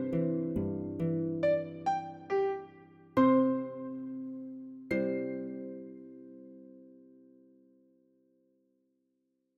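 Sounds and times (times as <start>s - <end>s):
concertino in C with harp: 0.0s - 6.5s.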